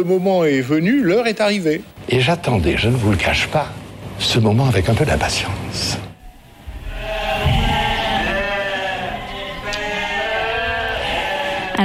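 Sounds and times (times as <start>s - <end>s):
speech: 0.0s - 6.0s
flock of sheep bleating: 6.8s - 11.8s.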